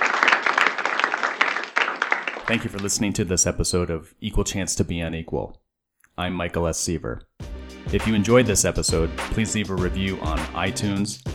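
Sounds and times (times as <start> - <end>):
applause: 0.0 - 3.0
speech: 2.5 - 5.6, 6.2 - 11.3.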